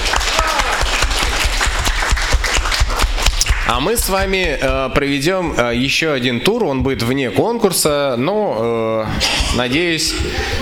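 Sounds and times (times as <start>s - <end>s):
audience applause: 0.0s - 4.0s
speech: 3.7s - 10.6s.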